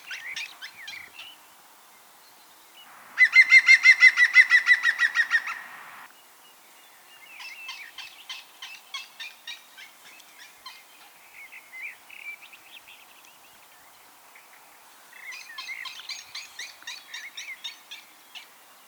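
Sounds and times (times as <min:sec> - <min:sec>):
European green woodpecker laughing call: 0:03.1 - 0:06.1.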